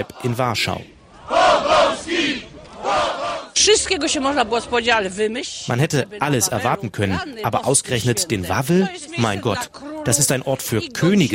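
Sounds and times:
speech: 0.0s - 0.9s, 1.6s - 11.3s
protest crowd chanting: 0.0s - 3.7s.

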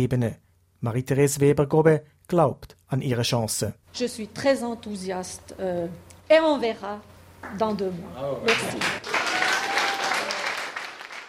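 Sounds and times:
speech: 0.0s - 9.2s
crowd applause: 8.4s - 11.2s.

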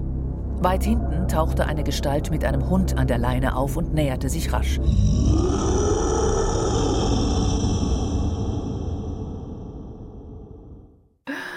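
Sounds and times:
speech: 0.6s - 6.0s
deep rumbling fantasy monster growl effect: 4.8s - 11.0s.

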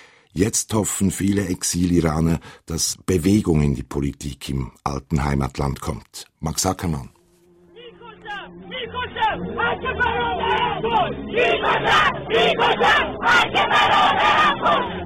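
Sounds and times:
speech: 0.4s - 7.2s, 8.8s - 15.0s
protest crowd chanting and shouting: 7.8s - 15.0s.

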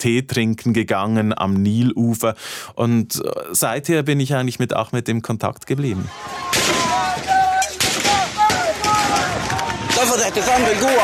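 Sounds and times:
speech: 0.0s - 7.0s, 10.1s - 11.0s
crowd of protesters shouting and yelling in panic: 6.1s - 11.0s
military gunfire during a protest massacre in Sudan: 7.8s - 10.2s.

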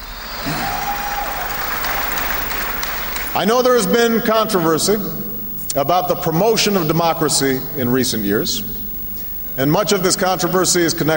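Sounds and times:
audience applause in Cairo: 0.0s - 3.4s
speech: 3.4s - 5.2s, 5.8s - 8.8s, 9.6s - 11.1s.

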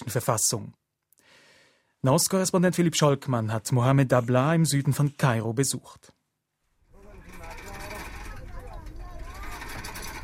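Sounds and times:
speech: 0.1s - 0.8s, 2.0s - 6.2s
ferry boat pulled along iron chain: 6.9s - 10.2s
indistinct voices: 6.9s - 10.2s.

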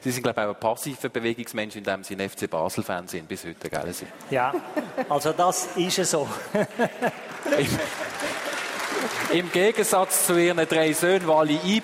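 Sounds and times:
speech: 0.0s - 8.4s, 9.1s - 11.8s
laughter: 4.3s - 9.6s
audience applause: 6.7s - 11.8s.

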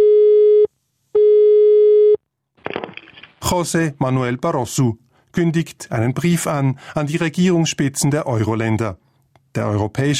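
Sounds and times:
telephone busy signal after the receiver is picked up: 0.0s - 2.2s
brief rustling noise: 2.6s - 3.5s
speech: 3.5s - 10.1s.

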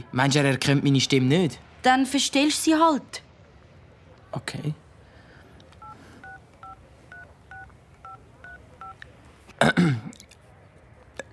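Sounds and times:
speech: 0.0s - 3.3s, 4.4s - 4.8s
telephone number being dialed: 5.8s - 9.0s.

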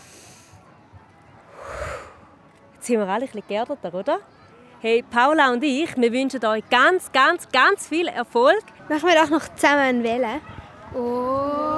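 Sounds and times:
group breathing in deeply through nose: 0.0s - 0.6s, 1.5s - 2.3s
speech: 2.9s - 11.7s.

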